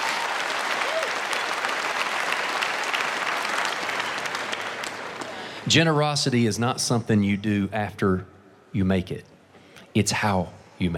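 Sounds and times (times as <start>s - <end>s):
audience applause: 0.0s - 5.6s
speech: 5.7s - 9.3s, 10.0s - 10.9s.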